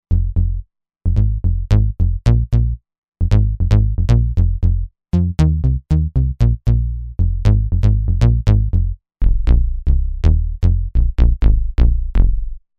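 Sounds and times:
bass: 0:00.0 - 0:12.7.

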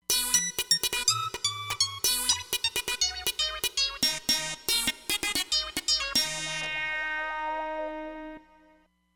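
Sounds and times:
Roland Fantom XR synthesizer: 0:00.0 - 0:08.8.

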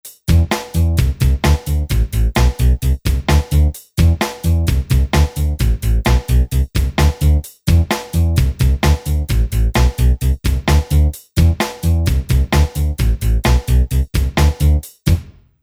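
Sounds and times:
ska music: 0:00.1 - 0:15.3.

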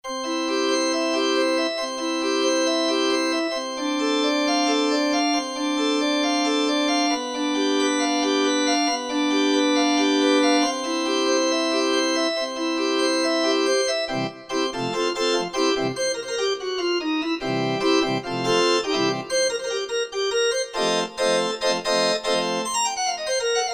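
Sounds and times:
Korg MSC-9S organ: 0:00.1 - 0:23.4.

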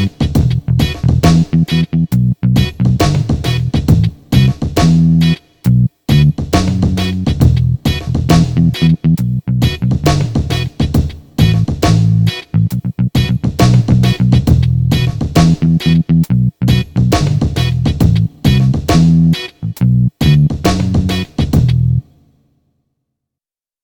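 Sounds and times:
picked bass on a Korg Radias-R synthesizer: 0:00.0 - 0:10.8, 0:11.4 - 0:22.0.

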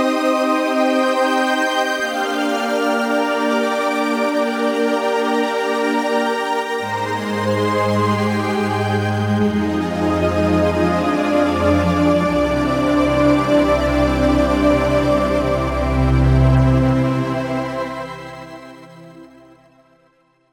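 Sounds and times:
heavenly synth pad: 0:00.1 - 0:19.7.

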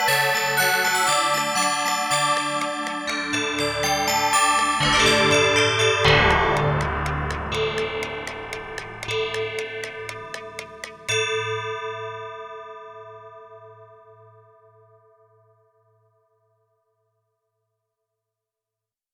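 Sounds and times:
clockwork synthesizer sounds: 0:00.0 - 0:11.2.

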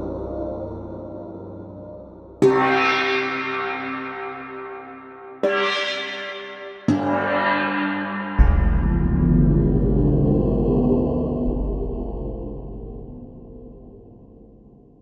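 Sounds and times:
gong: 0:02.4 - 0:13.1.

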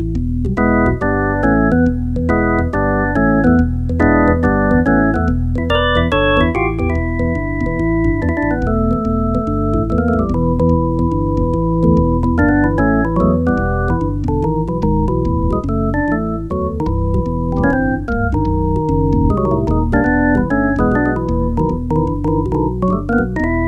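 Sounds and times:
organ: 0:00.1 - 0:23.6.

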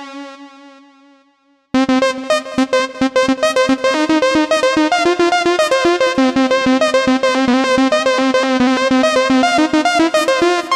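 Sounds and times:
Novation UltraNova synthesizer factory patches: 0:01.8 - 0:10.7.

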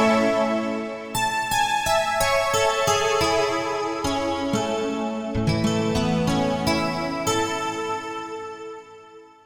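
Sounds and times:
guitar pad on a synthesizer: 0:00.0 - 0:07.5.

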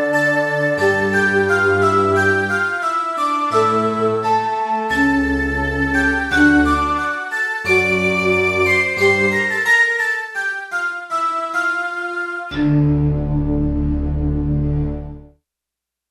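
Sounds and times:
digital synthesizer harpsi flute tone: 0:00.0 - 0:15.2.

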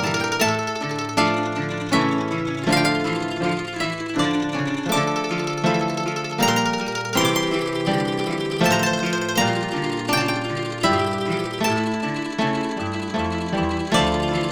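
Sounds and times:
nylon guitar harp tremolo in mandolin style: 0:00.0 - 0:14.5.

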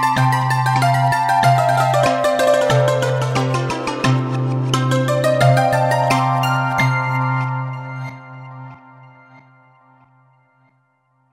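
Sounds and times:
tuned scale on Roland V-Synth factory patch: 0:00.0 - 0:08.7.

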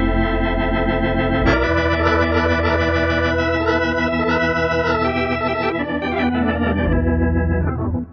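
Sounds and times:
tonewheel organ tone on a Kurzweil K2000 keyboard: 0:00.0 - 0:08.1.

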